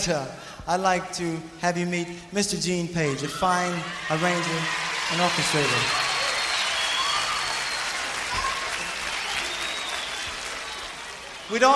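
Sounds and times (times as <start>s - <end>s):
speech: 0.0s - 6.1s, 11.5s - 11.7s
whistles and cheers: 3.3s - 11.7s
audience applause: 3.9s - 11.7s.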